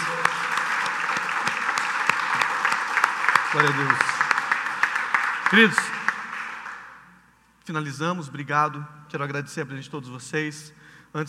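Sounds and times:
audience applause: 0.0 - 7.0
speech: 3.6 - 4.1, 5.5 - 6.0, 7.7 - 11.2.

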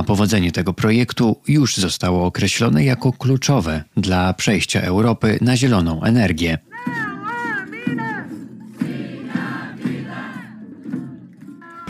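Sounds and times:
speech: 0.0 - 7.0
crowd of protesters chanting against lithium mine: 6.7 - 11.8.

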